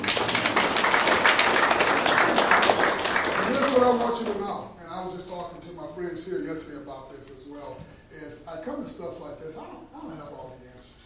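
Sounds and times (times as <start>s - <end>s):
group of people clapping their hands: 0.0s - 4.6s
speech: 6.6s - 11.0s.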